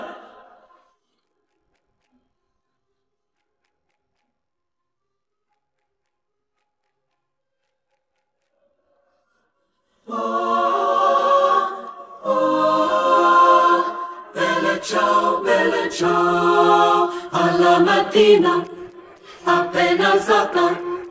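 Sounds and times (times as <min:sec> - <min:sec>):
three-part mixed choir singing: 0:00.0 - 0:00.8, 0:10.0 - 0:21.0.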